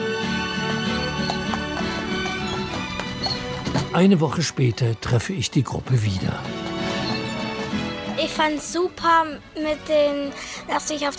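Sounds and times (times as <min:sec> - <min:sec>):
horse-drawn covered wagon setting off: 0:00.2 - 0:04.7, 0:05.8 - 0:08.2
speech: 0:03.9 - 0:06.6, 0:08.2 - 0:11.1.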